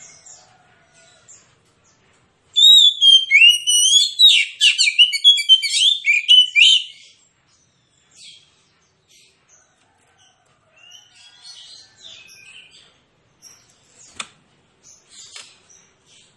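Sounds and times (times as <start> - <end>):
magpie-robin rapid-fire song: 2.6 - 7.2.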